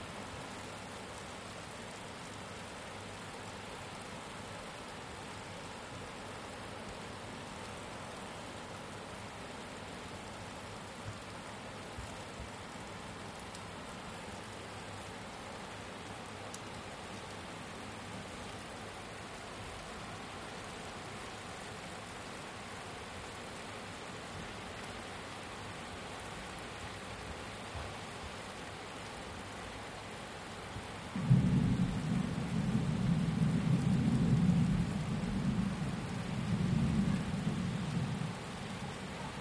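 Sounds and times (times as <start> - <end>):
thunderstorm heard from a caravan: 31.2 - 38.5.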